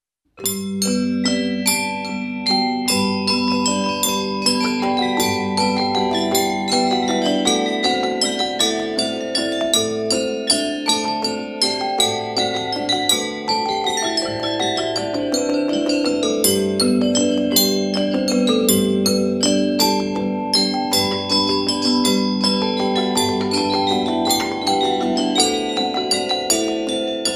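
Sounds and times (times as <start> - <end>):
bells rung in harmony by bell ringers: 0.4 - 27.3.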